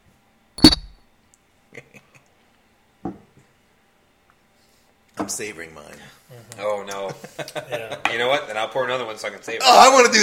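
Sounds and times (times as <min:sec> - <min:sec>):
shot glasses clinking: 0:00.6 - 0:00.9
speech: 0:05.3 - 0:10.2.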